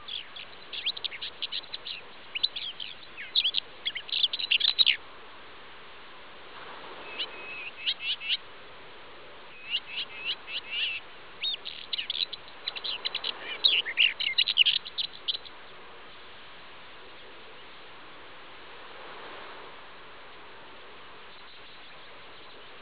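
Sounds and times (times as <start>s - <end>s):
birds chirping: 0.0s - 5.0s, 7.0s - 8.5s, 9.5s - 15.9s, 21.2s - 22.8s.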